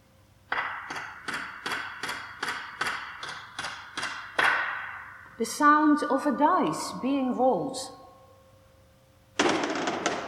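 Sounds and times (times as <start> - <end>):
hammer striking nails into wood: 0.5 - 5.0
speech: 5.4 - 8.0.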